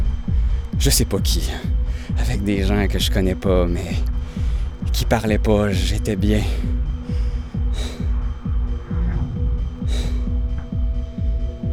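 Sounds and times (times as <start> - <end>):
steady rapid throbbing pulse: 0.0 - 11.7
speech: 0.8 - 4.2, 4.9 - 6.9
heavy breathing as someone catches their breath: 1.5 - 2.5, 3.8 - 11.7.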